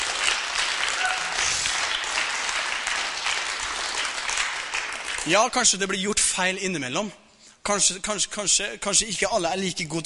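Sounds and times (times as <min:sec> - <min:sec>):
audience applause: 0:00.0 - 0:05.4
speech: 0:05.2 - 0:10.0.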